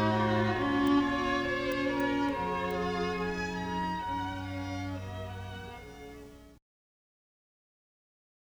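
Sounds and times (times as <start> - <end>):
strings playing a classical piece: 0.0 - 6.6.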